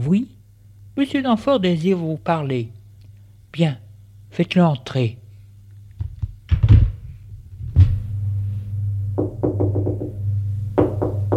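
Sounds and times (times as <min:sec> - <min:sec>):
speech: 0:00.0 - 0:00.4, 0:01.0 - 0:02.8, 0:03.5 - 0:05.2
low hum: 0:06.9 - 0:11.3
knocking on a door: 0:09.2 - 0:10.2, 0:10.8 - 0:11.3.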